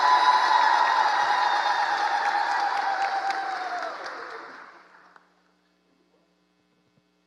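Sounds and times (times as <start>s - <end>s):
audience applause: 0.0s - 5.2s.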